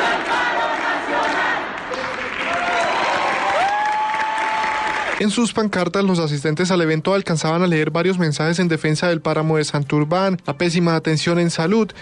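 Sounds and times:
wave of applause at graduation: 0.2s - 5.4s
speech: 5.2s - 12.0s.

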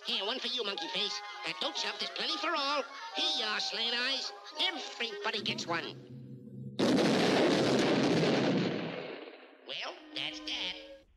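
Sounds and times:
speech: 0.1s - 6.2s
cartoon explosions from exploding ice cream bars: 6.8s - 10.4s.

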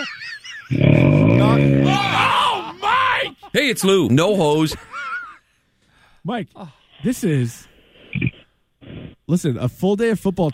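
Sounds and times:
loud snoring: 0.7s - 2.0s
speech: 3.6s - 4.9s, 6.2s - 8.2s, 9.3s - 10.5s.

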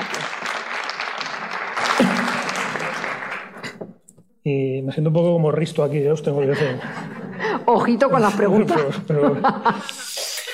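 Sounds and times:
audience applause: 0.0s - 3.8s
speech: 4.4s - 10.0s
laughter: 6.3s - 10.5s.

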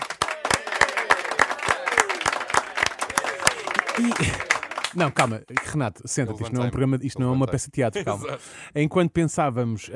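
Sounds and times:
applause: 0.0s - 5.8s
laughter: 0.4s - 5.2s
speech: 4.0s - 9.9s.

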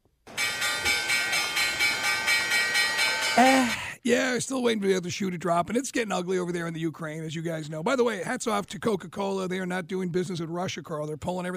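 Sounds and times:
Wall Street closing bell sound effect: 0.3s - 3.6s
speech: 4.1s - 11.5s.

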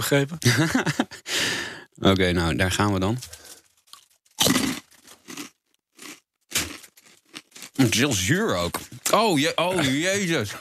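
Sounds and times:
speech: 0.0s - 1.3s, 2.0s - 3.4s, 7.9s - 10.6s
laughter: 0.4s - 1.3s
person crunching and chewing sour spicy British food: 3.4s - 8.1s.

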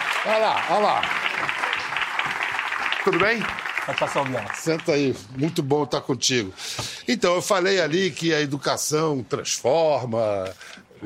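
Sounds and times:
audience applause: 0.0s - 5.3s
speech: 0.2s - 2.4s, 3.0s - 11.0s.

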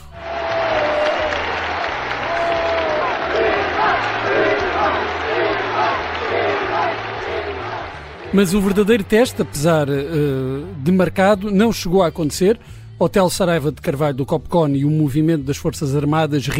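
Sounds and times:
bullring crowd applause: 0.0s - 10.5s
speech: 8.3s - 16.5s.

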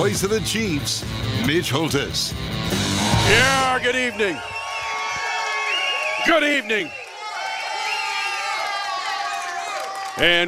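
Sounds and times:
speech: 0.0s - 4.6s, 6.2s - 7.0s, 10.2s - 10.4s
rowdy crowd cheering: 2.6s - 10.4s.

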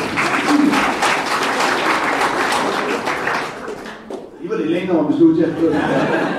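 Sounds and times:
laughter: 0.0s - 3.8s, 5.2s - 6.3s
audience clapping: 0.0s - 4.4s
speech: 4.9s - 6.3s.

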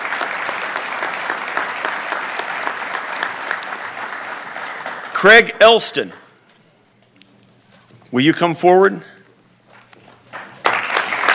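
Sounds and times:
audience applause: 0.0s - 6.3s, 10.2s - 11.3s
speech: 5.2s - 6.2s, 8.2s - 9.1s.

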